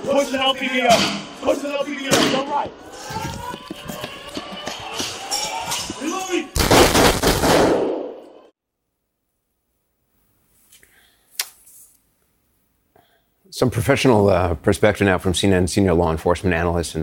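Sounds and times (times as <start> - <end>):
speech: 0.1 - 3.3, 13.6 - 17.0
gunshots during a police confrontation: 6.6 - 8.0.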